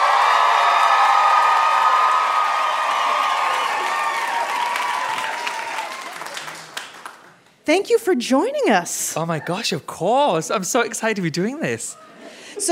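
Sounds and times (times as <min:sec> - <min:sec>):
audience applause and cheering welcoming a guest onto a show: 0:00.0 - 0:07.6
speech: 0:07.7 - 0:12.6.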